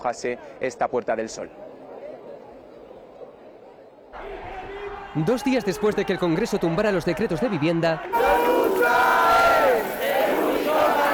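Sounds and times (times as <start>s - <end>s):
speech: 0.0s - 1.6s, 5.2s - 9.2s
protest crowd shouting in indignation: 4.2s - 11.1s.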